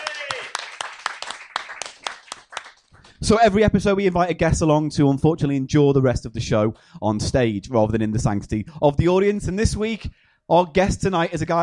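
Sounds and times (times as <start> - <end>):
audience applause: 0.0 - 3.1
speech: 3.2 - 11.6.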